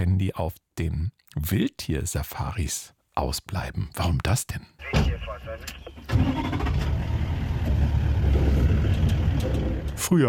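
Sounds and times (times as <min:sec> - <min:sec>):
speech: 0:00.2 - 0:07.1, 0:10.0 - 0:10.2
safari jeep engine starting: 0:05.8 - 0:10.1.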